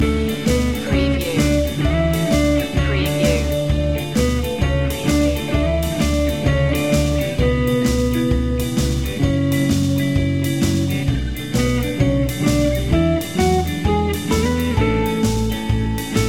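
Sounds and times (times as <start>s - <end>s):
swing music loop: 0.0s - 16.2s.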